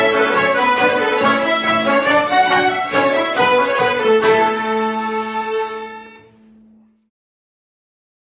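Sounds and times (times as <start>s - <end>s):
polka music: 0.0s - 6.5s.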